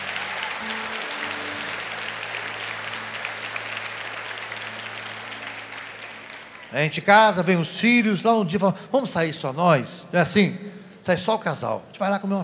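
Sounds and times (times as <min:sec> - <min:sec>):
audience applause: 0:00.0 - 0:08.1
speech: 0:06.7 - 0:12.4.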